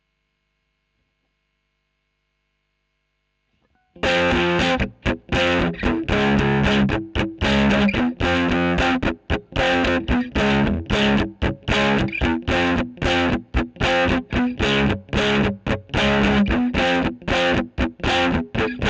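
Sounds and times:
electric guitar recorded with a Royer microphone: 3.9 - 18.8.

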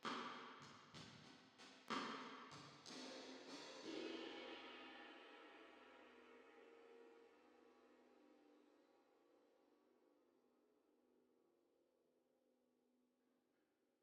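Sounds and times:
drums with reverb: 0.0 - 6.4.

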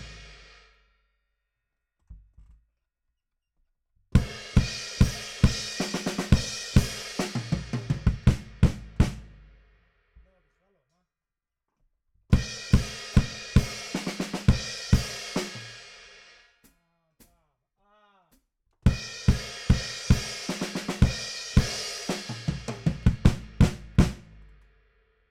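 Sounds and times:
bass drum: 4.2 - 9.5, 12.4 - 15.7, 18.9 - 24.5.

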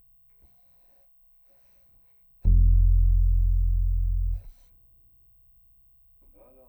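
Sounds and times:
bass guitar C note through DI: 2.5 - 5.4.

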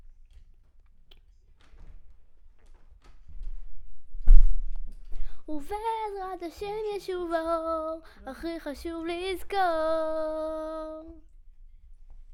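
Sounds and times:
children's choir singing: 5.5 - 11.2.

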